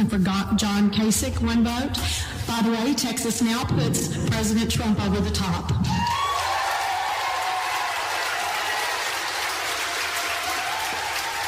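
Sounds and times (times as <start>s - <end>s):
speech: 0.0s - 6.2s
convention crowd applause: 6.0s - 11.4s.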